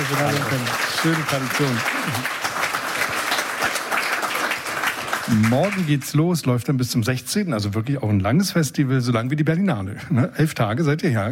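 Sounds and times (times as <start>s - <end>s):
audience applause: 0.0s - 6.2s
speech: 0.1s - 2.4s, 5.3s - 11.3s.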